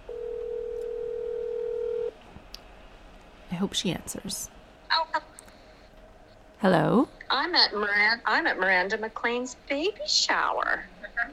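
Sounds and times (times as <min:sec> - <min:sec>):
phone dialing tone for a voice call: 0:00.1 - 0:02.1
speech: 0:03.6 - 0:04.6, 0:06.6 - 0:11.3.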